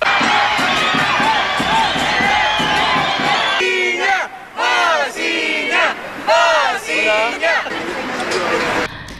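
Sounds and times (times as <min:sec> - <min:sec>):
rhythmic drum and gong beats: 0:00.0 - 0:03.6
fans cheering: 0:00.0 - 0:08.9
raucous crowd shouting and chanting: 0:00.0 - 0:08.9.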